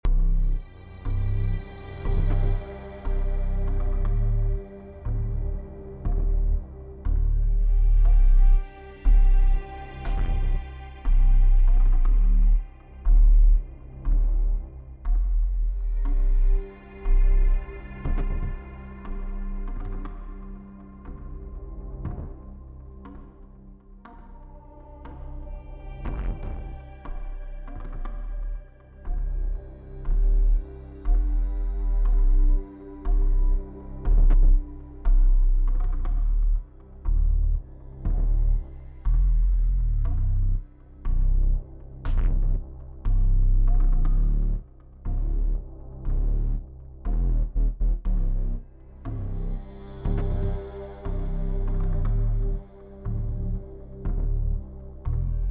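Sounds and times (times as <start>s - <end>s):
suspense music loop: 0.0s - 55.5s.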